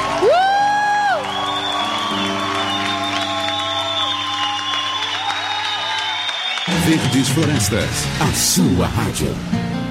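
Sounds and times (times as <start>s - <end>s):
crowd clapping and cheering: 0.0s - 9.4s
loud rising whistle-like tone: 0.6s - 7.6s
speech: 6.9s - 9.8s.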